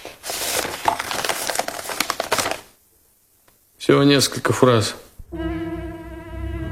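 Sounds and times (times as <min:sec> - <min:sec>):
paper envelope being opened and handled: 0:00.0 - 0:02.8
speech: 0:03.9 - 0:05.5.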